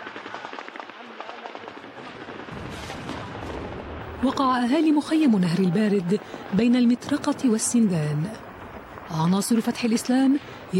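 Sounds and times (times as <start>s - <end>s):
gunfire: 0.0s - 4.4s
artillery shelling booms: 0.0s - 9.8s
speech: 4.2s - 8.4s, 9.1s - 10.7s.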